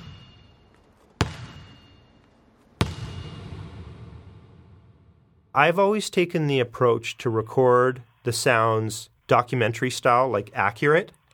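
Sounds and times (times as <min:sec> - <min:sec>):
basketball bouncing off floor: 0:00.0 - 0:04.9
ping of basketball near microphone: 0:00.0 - 0:04.9
speech: 0:05.6 - 0:11.3.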